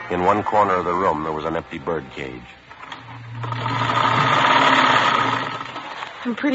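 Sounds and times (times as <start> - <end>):
speech: 0.1 - 2.6, 6.2 - 6.5
sewing machine stitching: 2.8 - 6.3.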